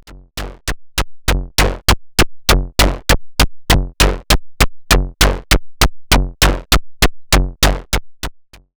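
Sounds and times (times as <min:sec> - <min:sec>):
groove music: 0:00.0 - 0:08.3.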